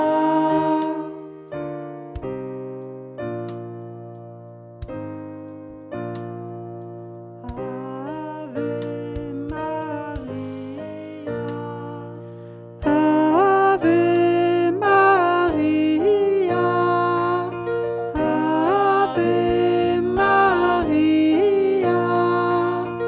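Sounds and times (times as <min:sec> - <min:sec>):
soprano singing a refrain as lead voice: 0:00.0 - 0:01.4, 0:07.5 - 0:23.0.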